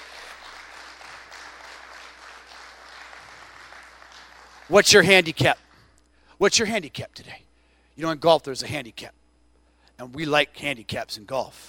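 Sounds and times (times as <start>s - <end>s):
audience applause: 0.0s - 4.8s
speech: 4.7s - 5.6s, 6.4s - 9.2s, 10.0s - 11.6s.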